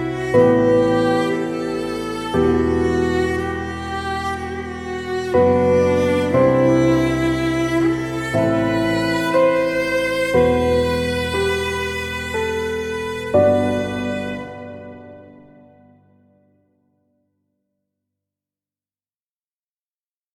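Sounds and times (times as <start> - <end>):
strings: 0.0 - 16.1
emotional piano: 0.0 - 17.2.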